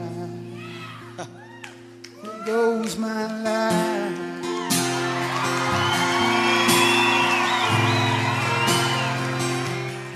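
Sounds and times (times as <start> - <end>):
whoops and cheers: 0.5 - 3.0, 4.1 - 10.1
spontaneous audience applause: 4.3 - 10.1.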